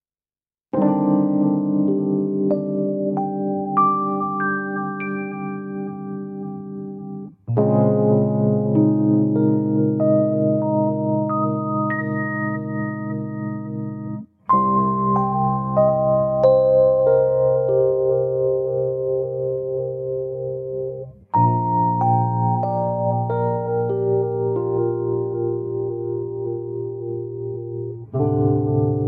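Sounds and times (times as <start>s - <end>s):
Rhodes electric piano: 0.7s - 29.0s.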